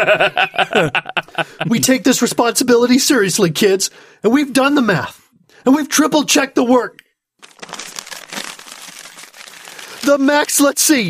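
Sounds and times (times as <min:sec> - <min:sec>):
laughter: 0:00.0 - 0:01.8
speech: 0:00.0 - 0:07.0, 0:10.0 - 0:11.0
paper rustling and crinkling: 0:07.4 - 0:11.0.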